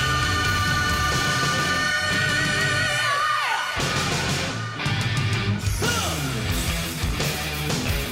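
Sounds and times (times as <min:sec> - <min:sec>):
rock song on the radio: 0:00.0 - 0:08.1.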